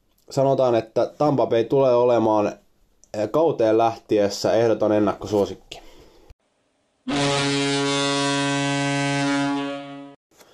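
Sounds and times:
speech: 0.3 - 5.8
horn-like buzzer marking end of period: 7.1 - 10.2.

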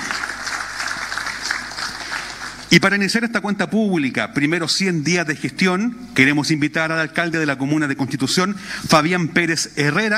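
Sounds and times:
audience applause: 0.0 - 2.7
speech: 2.7 - 10.1.

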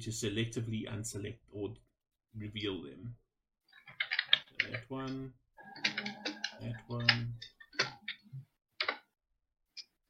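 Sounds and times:
speech: 0.0 - 3.2, 4.6 - 7.5
furious typing on a keyboard: 3.9 - 4.8, 5.7 - 8.2.

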